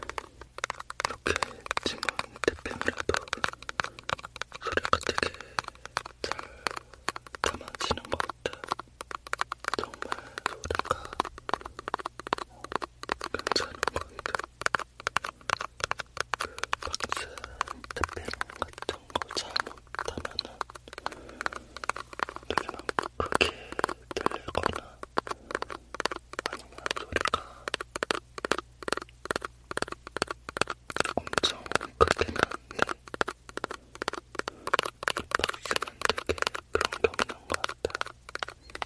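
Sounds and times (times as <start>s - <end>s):
fingers tapping on a cosmetics box: 0.0s - 38.8s
low steady hum: 0.0s - 38.8s.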